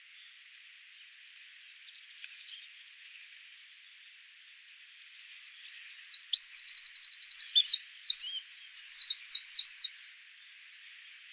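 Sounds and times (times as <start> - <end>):
Eurasian wren singing: 5.1 - 9.9.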